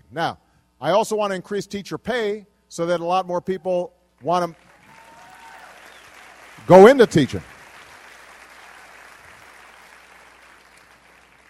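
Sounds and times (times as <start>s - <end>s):
speech: 0.1s - 4.6s, 6.6s - 7.5s
crowd applauding: 4.6s - 11.4s.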